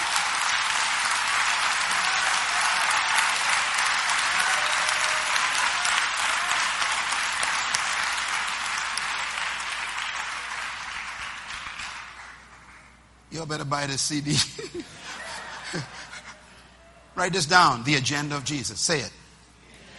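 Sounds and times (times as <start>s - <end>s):
audience applause: 0.0s - 12.9s
speech: 13.4s - 16.0s, 17.2s - 19.2s
laughter: 14.3s - 16.6s.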